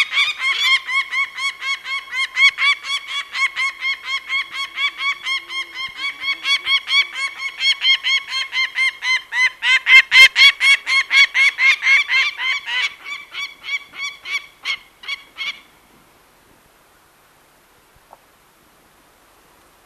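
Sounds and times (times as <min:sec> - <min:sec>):
Peregrine falcon harsh cackling: 0:00.0 - 0:15.6.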